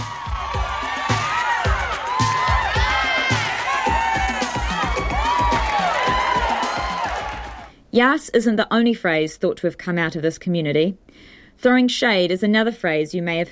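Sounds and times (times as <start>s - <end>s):
ballroom crowd cheering: 0.0s - 7.7s
speech: 8.0s - 13.5s.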